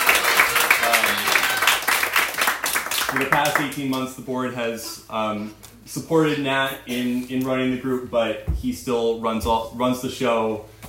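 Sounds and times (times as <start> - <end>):
concert audience applause thanking a choir's organiser: 0.0 - 3.8
speech: 3.1 - 10.7.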